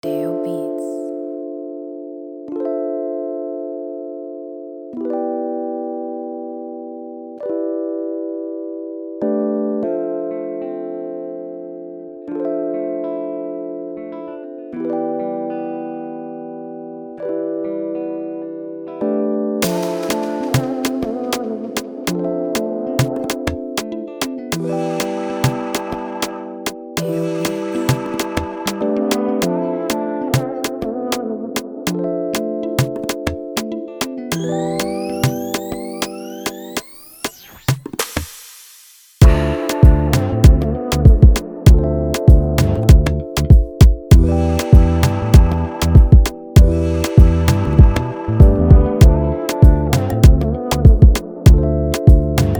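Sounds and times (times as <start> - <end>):
instrumental type beat: 19.6 - 38.5, 39.2 - 52.5.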